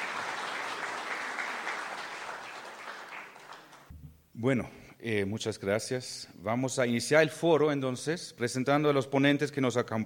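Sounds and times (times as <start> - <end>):
audience applause: 0.0 - 3.9
speech: 4.4 - 10.0.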